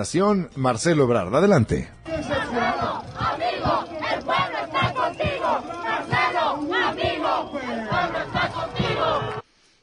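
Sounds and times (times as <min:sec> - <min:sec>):
speech: 0:00.0 - 0:02.9
crowd shouting supportive chant: 0:02.1 - 0:09.4.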